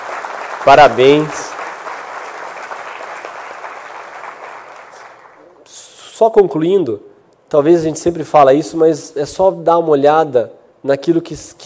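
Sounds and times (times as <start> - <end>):
crowd applauding: 0.0 - 5.5
speech: 0.6 - 1.5, 6.2 - 11.6.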